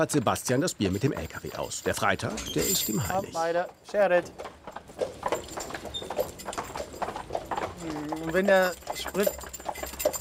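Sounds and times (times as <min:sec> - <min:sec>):
speech: 0:00.0 - 0:04.6, 0:08.2 - 0:09.4
horse hooves clip-clopping on a hard surface pulling beer cart: 0:00.0 - 0:10.2
cart rumbling: 0:00.8 - 0:10.2.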